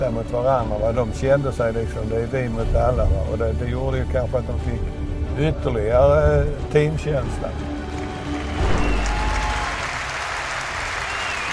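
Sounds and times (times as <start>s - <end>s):
speech: 0.0s - 7.7s
audience applause: 7.7s - 11.5s.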